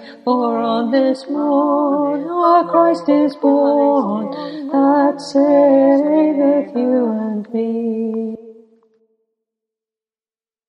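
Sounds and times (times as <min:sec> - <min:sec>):
choir singing: 0:00.0 - 0:08.4.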